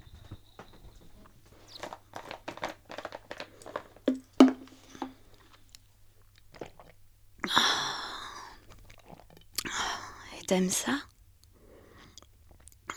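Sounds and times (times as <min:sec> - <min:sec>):
person drinking and swallowing: 0:00.0 - 0:05.8, 0:06.4 - 0:09.8
small wet clicks: 0:00.0 - 0:05.8
speech: 0:10.5 - 0:11.1.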